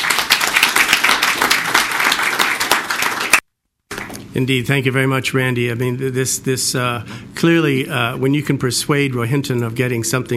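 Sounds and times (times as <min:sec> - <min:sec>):
audience applause: 0:00.0 - 0:03.4
speech: 0:04.4 - 0:10.3.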